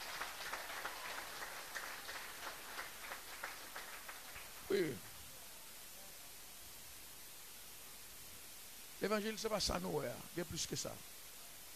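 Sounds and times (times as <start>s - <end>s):
audience applause: 0.0s - 5.0s
speech: 4.7s - 5.1s, 9.0s - 11.2s.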